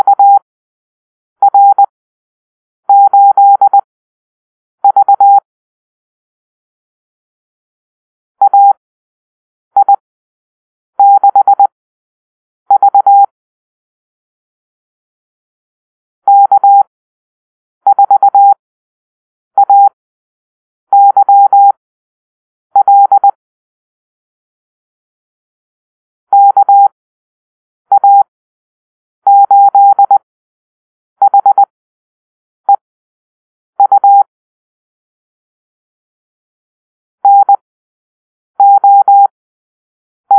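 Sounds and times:
morse code call-sign drill: 0.0 - 0.4, 1.4 - 1.9, 2.9 - 3.8, 4.8 - 5.4, 8.4 - 8.8, 9.8 - 10.0, 11.0 - 11.7, 12.7 - 13.3, 16.3 - 16.9, 17.9 - 18.6, 19.6 - 19.9, 20.9 - 21.8, 22.8 - 23.4, 26.3 - 27.0, 27.9 - 28.3, 29.3 - 30.2, 31.2 - 31.7, 33.8 - 34.3, 37.2 - 37.6, 38.6 - 39.3.

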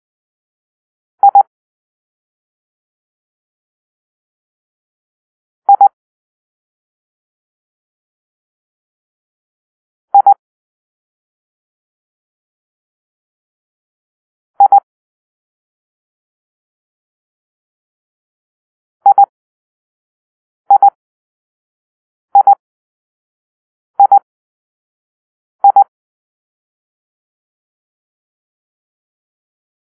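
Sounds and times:
morse code for the letter I: 1.2 - 1.5, 10.2 - 10.4, 19.1 - 19.3, 22.4 - 22.6, 24.0 - 24.2, 25.6 - 25.9.

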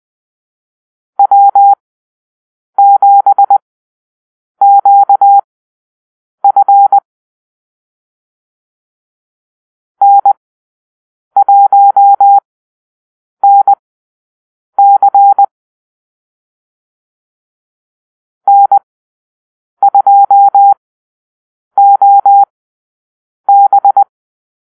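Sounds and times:
morse code call-sign drill: 1.2 - 1.8, 2.8 - 3.6, 4.6 - 5.5, 6.4 - 7.0, 10.0 - 10.4, 11.4 - 12.4, 13.4 - 13.8, 14.8 - 15.5, 18.5 - 18.8, 19.8 - 20.8, 21.8 - 22.5, 23.5 - 24.1.

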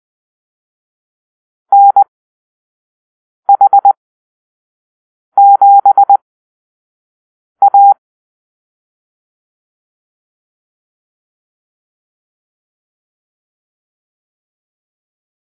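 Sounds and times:
morse code call-sign beeps: 1.7 - 2.0, 3.5 - 4.0, 5.4 - 6.2, 7.6 - 8.0.

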